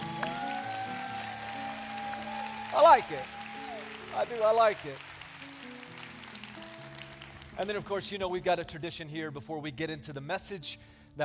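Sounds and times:
audience clapping in greeting: 0.0s - 8.2s
speech: 2.8s - 3.4s, 4.2s - 5.1s, 7.6s - 11.2s.

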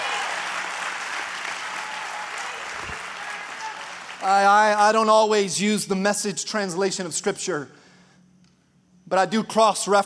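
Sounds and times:
audience clapping: 0.0s - 4.7s
speech: 4.2s - 7.8s, 9.1s - 10.0s.

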